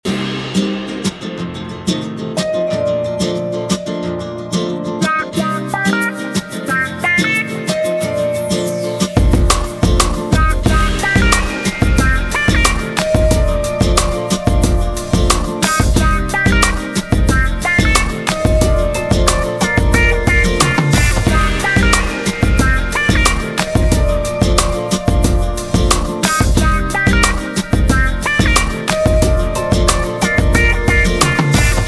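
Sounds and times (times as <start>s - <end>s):
guitar: 0.0s - 31.8s.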